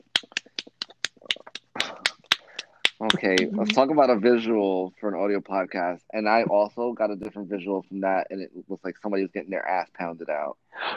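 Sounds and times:
sarcastic hand clapping: 0.0s - 4.8s
laughter: 3.0s - 10.9s
speech: 3.0s - 10.9s.

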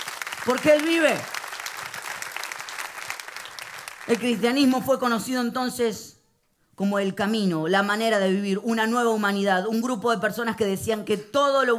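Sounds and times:
audience applauding: 0.0s - 4.5s
speech: 0.4s - 1.4s, 4.0s - 6.1s, 6.8s - 11.7s.

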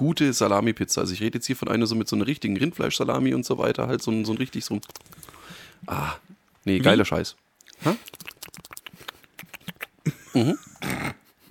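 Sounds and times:
speech: 0.0s - 8.3s, 10.4s - 10.7s
lip-smacking while eating: 4.7s - 6.6s, 7.6s - 10.1s.

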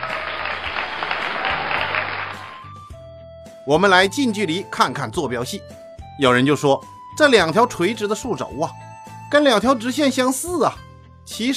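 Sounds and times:
applause sound effect: 0.0s - 2.9s
speech: 3.7s - 11.5s.

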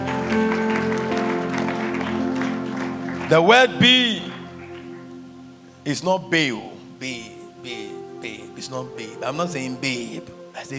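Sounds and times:
audience clapping: 0.0s - 5.2s
sustained keyboard or organ chords: 0.0s - 10.7s
speech: 0.3s - 0.6s, 3.3s - 4.2s, 5.8s - 10.7s.

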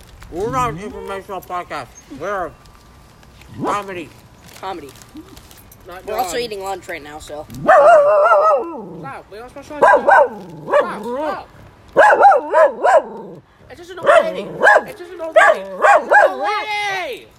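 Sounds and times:
speech: 0.3s - 2.6s, 3.5s - 17.3s
dog barking and yipping: 7.6s - 9.0s, 9.8s - 11.2s, 11.9s - 13.4s, 14.0s - 16.6s.

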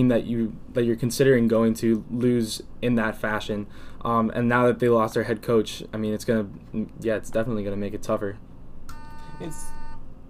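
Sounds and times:
speech: 0.0s - 8.5s, 9.4s - 9.8s
door entry buzzer: 8.9s - 10.0s.

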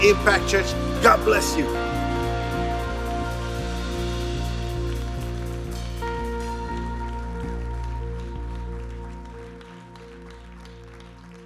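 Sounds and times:
speech: 0.0s - 2.0s
crowd clapping: 0.0s - 11.4s
musical chords: 0.0s - 11.4s.

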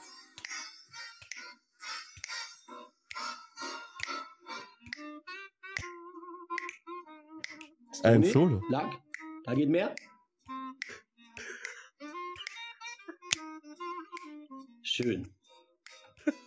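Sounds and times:
finger snapping: 0.4s - 0.6s, 1.2s - 1.5s, 2.2s - 2.4s, 3.1s - 3.3s, 4.0s - 4.2s, 4.8s - 14.5s, 15.8s - 16.4s
speech: 8.0s - 10.0s, 15.0s - 15.4s.

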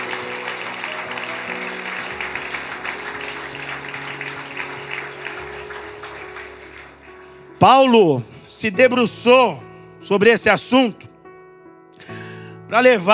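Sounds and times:
crowd clapping loudly: 0.0s - 7.6s
speech: 7.6s - 11.1s, 12.7s - 13.1s.

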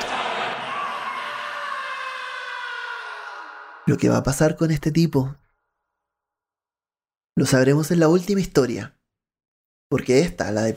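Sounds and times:
person screaming: 0.0s - 3.9s
speech: 3.9s - 5.4s, 7.4s - 9.0s, 9.9s - 10.7s.

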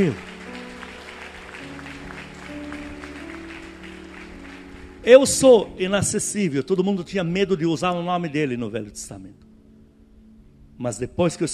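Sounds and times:
speech: 0.0s - 0.3s, 5.0s - 9.5s, 10.8s - 11.5s
audience applause: 0.0s - 5.7s.

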